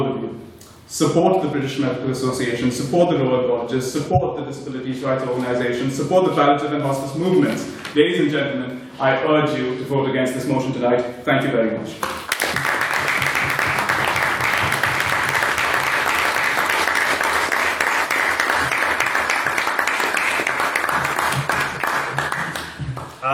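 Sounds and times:
speech: 0:00.9 - 0:12.2
audience applause after debate speech: 0:12.0 - 0:23.2.

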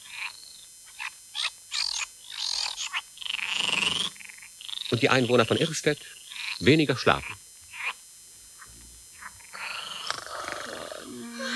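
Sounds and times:
frogs croaking: 0:00.0 - 0:11.5
speech: 0:04.9 - 0:07.4.

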